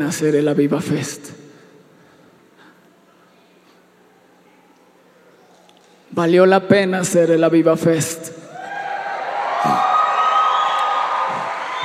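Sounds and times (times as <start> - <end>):
speech: 0.0 - 1.4, 6.2 - 8.4
audience cheering: 8.5 - 11.8
audience applauding: 8.9 - 11.8.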